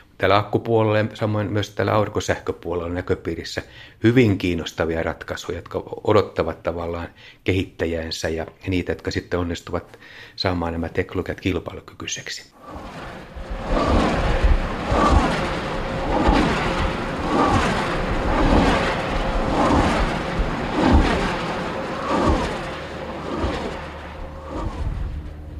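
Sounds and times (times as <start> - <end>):
speech: 0.2 - 13.1
wind turbine blades whooshing as they turn: 12.6 - 25.5.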